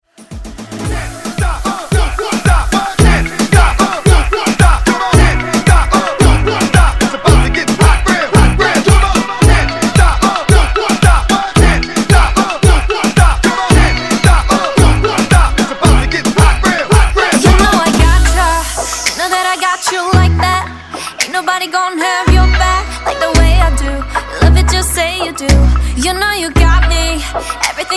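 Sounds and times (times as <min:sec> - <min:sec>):
reggaeton K-pop music: 0:00.0 - 0:27.9.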